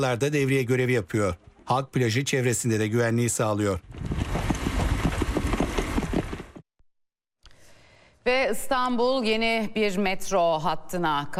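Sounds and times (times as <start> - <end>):
speech: 0.0 - 4.1, 8.2 - 11.3
horse hooves clip-clopping: 3.8 - 6.6.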